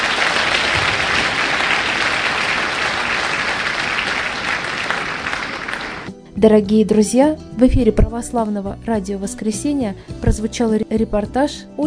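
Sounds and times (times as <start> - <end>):
audience applause: 0.0 - 6.1
speech: 6.4 - 11.8.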